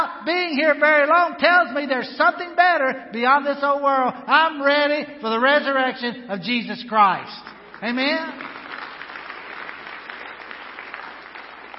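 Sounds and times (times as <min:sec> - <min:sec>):
speech: 0:00.2 - 0:08.6
audience clapping: 0:07.4 - 0:11.7.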